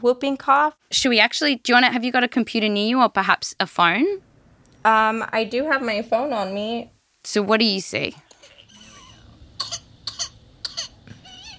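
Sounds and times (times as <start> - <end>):
speech: 0.0 - 8.2
baby coughing from whooping cough: 8.4 - 11.5.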